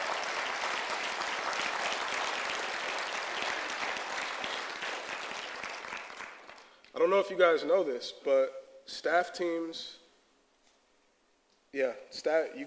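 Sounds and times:
crowd applauding: 0.0s - 6.8s
speech: 7.0s - 10.0s, 11.7s - 12.6s.

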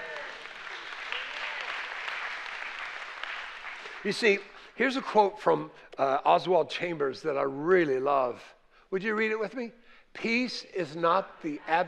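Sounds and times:
crowd clapping: 0.0s - 5.2s
speech: 4.0s - 11.8s.

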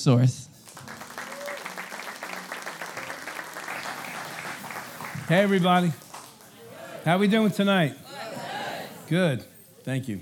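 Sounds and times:
speech: 0.0s - 0.5s, 5.3s - 6.0s, 7.0s - 8.0s, 9.1s - 10.2s
large audience applause welcoming the pastor: 0.6s - 7.8s
faint voices and cheers in the crowd: 0.7s - 9.2s.

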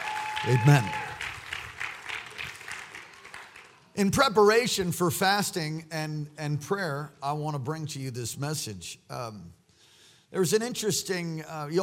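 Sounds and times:
audience hand clapping: 0.0s - 4.0s
speech: 0.4s - 1.0s, 4.0s - 9.6s, 10.3s - 11.8s.

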